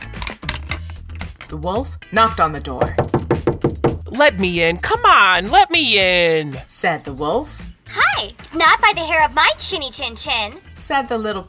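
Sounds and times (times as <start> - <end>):
wooden sticks clattering together: 0.0 - 1.6
speech: 1.5 - 3.2, 4.1 - 11.4.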